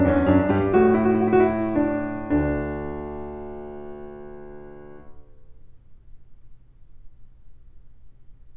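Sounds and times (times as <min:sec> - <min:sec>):
piano invention: 0:00.0 - 0:05.8.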